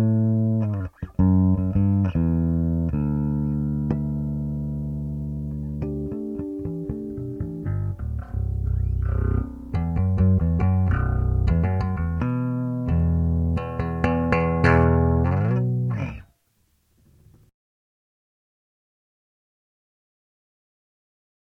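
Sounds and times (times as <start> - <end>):
bass guitar with active neck pickup: 0.0 - 16.3.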